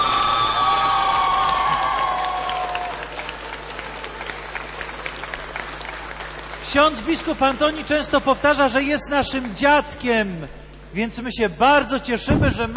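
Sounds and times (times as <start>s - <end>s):
audience applause: 0.0s - 9.6s
speech: 6.7s - 12.7s.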